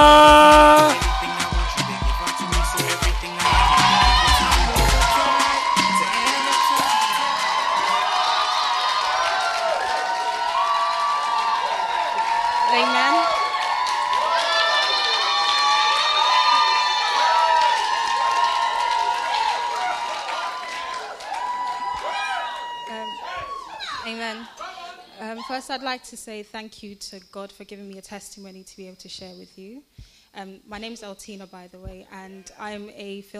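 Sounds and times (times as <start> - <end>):
audience clapping: 0.0 - 25.0
crowd shouts, whoops and excited voices: 0.0 - 25.5
speech: 26.0 - 33.3.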